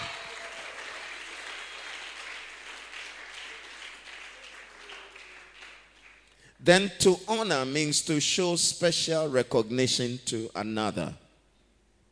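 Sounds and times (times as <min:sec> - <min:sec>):
audience applauding: 0:00.0 - 0:06.4
speech: 0:06.6 - 0:11.2.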